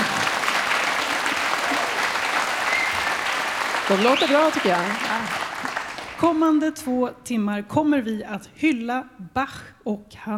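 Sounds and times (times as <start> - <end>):
audience applause: 0.0 - 6.3
speech: 3.9 - 5.4, 6.2 - 10.3.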